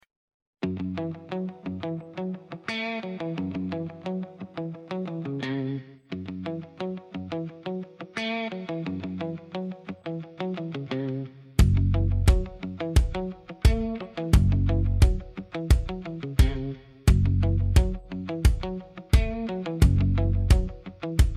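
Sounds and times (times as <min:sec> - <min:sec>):
instrumental music: 0:00.7 - 0:21.3.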